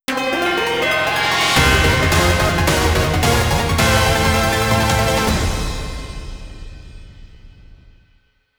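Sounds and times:
victory jingle: 0:00.1 - 0:05.9.

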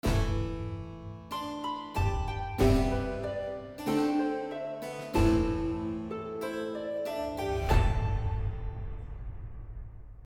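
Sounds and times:
harp suite: 0:01.2 - 0:09.3.

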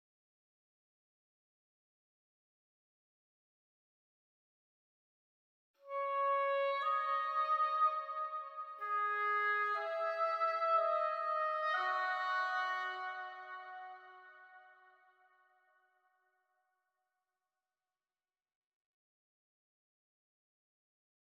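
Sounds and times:
oboe: 0:05.8 - 0:15.0.

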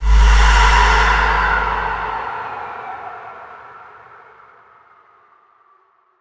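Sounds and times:
impact hit: 0:00.0 - 0:02.9.

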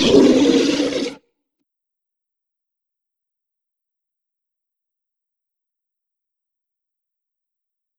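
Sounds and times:
monster death sound: 0:00.0 - 0:01.2.

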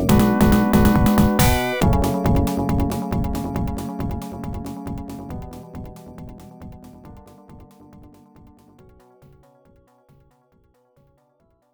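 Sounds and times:
game menu music: 0:00.1 - 0:06.8.

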